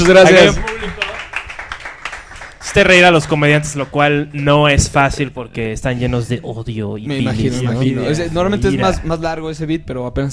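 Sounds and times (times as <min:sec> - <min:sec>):
speech: 0:00.0 - 0:01.0, 0:02.8 - 0:10.3
audience applauding: 0:00.0 - 0:04.2.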